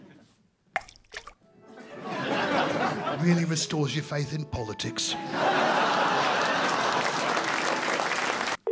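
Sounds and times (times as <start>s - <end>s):
melting ice sculpture dripping water: 0.8s - 1.4s
laughter: 1.6s - 8.6s
speech: 3.2s - 5.8s.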